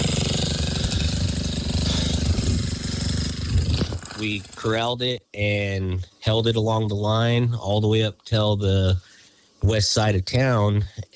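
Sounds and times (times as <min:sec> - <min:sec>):
bulldozer engine digging a fire break: 0:00.0 - 0:04.8
speech: 0:04.2 - 0:11.1.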